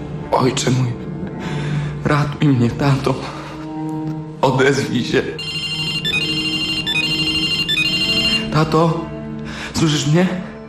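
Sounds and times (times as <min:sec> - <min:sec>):
speech: 0:00.3 - 0:03.4, 0:04.4 - 0:05.5, 0:08.6 - 0:09.0, 0:09.8 - 0:10.5
repeating electronic phone ringtone: 0:05.4 - 0:08.6.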